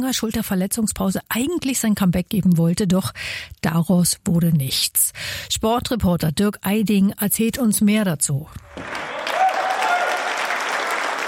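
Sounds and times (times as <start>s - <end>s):
speech: 0.0s - 9.2s
applause in a sports hall: 8.7s - 11.2s.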